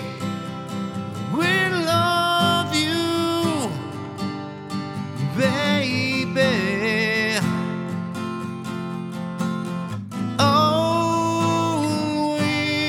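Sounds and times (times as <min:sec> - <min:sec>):
guitar through a preamp: 0:00.0 - 0:12.8
vocals recorded with Austrian Audio OC818 microphone: 0:01.3 - 0:04.1, 0:05.3 - 0:07.5, 0:10.4 - 0:12.8.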